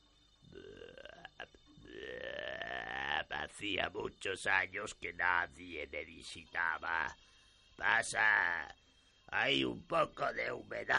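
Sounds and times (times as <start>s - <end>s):
voice imitating giant toad croaking: 0.5s - 3.4s
speech: 3.6s - 10.9s.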